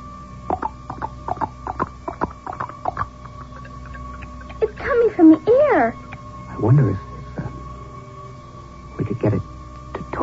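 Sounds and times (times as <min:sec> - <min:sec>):
rhythmic tapping imitating galloping horse hooves: 0:00.4 - 0:06.3
speech: 0:05.2 - 0:06.0, 0:06.6 - 0:07.0.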